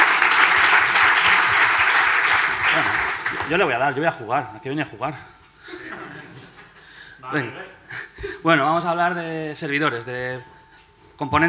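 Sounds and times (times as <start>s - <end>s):
audience applause: 0.0s - 3.8s
speech: 2.8s - 5.9s, 7.2s - 10.6s, 11.2s - 11.4s
laughter: 5.6s - 7.0s.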